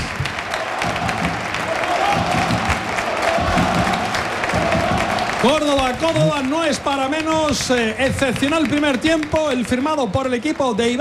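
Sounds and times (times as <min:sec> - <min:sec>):
stadium crowd applauding players at half-time: 0:00.0 - 0:10.9
speech: 0:05.4 - 0:10.9.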